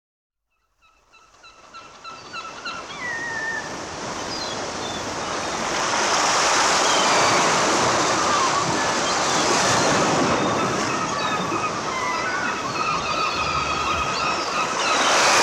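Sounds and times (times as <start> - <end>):
gulls calling: 0.9 - 15.4
roar of breaking waves: 2.6 - 15.4.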